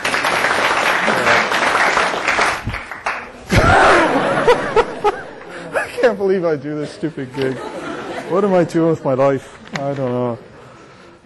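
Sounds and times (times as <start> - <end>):
audience applause: 0.0 - 5.7
laughter: 3.5 - 9.4
speech: 6.0 - 7.7, 8.3 - 10.5.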